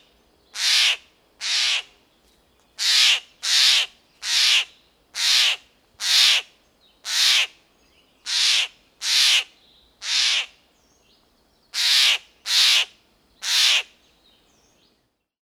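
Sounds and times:
bird giving hoarse crow-like squawks: 0:00.6 - 0:01.9, 0:02.8 - 0:06.5, 0:07.1 - 0:07.5, 0:08.3 - 0:10.6, 0:11.8 - 0:13.9.

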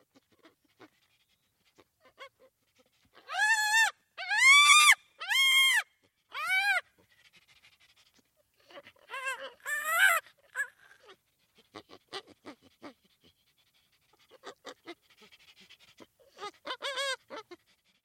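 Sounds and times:
chimpanzee panting: 0:00.0 - 0:03.4, 0:06.0 - 0:18.0
chimpanzee squealing: 0:03.2 - 0:06.8, 0:09.0 - 0:11.1.

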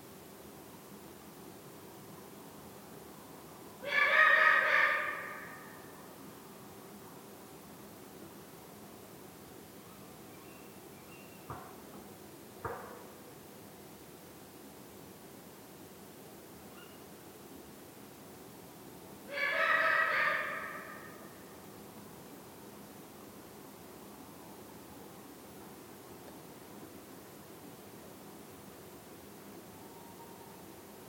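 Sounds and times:
Eurasian eagle-owl drawn-out nasal call: 0:03.8 - 0:05.9, 0:19.3 - 0:21.5.

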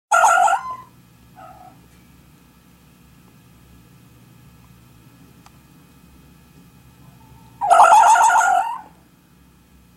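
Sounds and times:
fox wailing cry: 0:00.1 - 0:01.8, 0:07.0 - 0:08.9.

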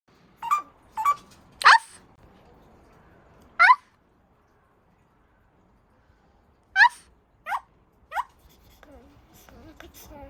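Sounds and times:
Eurasian jay giving imitated dog barks: 0:00.4 - 0:02.0, 0:06.8 - 0:08.3.

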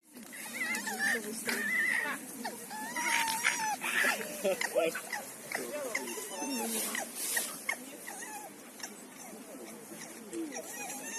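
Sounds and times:
red fox whining calls: 0:00.3 - 0:09.4, 0:10.0 - 0:11.1.

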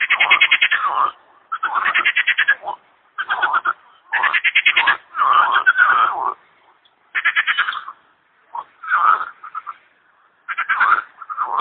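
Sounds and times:
frogs croaking in rattling pulsed bursts: 0:00.0 - 0:11.5
speech: 0:00.9 - 0:03.7.

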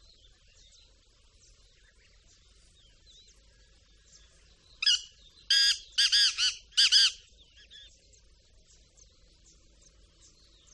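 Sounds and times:
faint high chirps of other birds: 0:00.0 - 0:10.7
Black francolin harsh grating call: 0:04.8 - 0:07.3.

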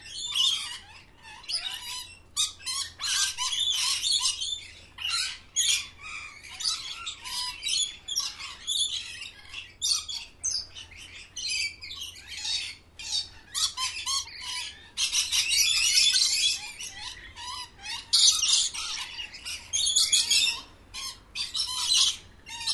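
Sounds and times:
parrots squawking: 0:00.0 - 0:22.7.

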